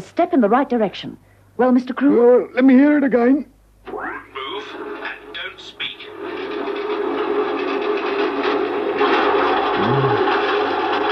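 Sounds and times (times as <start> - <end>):
speech: 0.0 - 4.9
train wheels clattering over rail joints: 4.6 - 11.0
train rumble: 4.8 - 8.2.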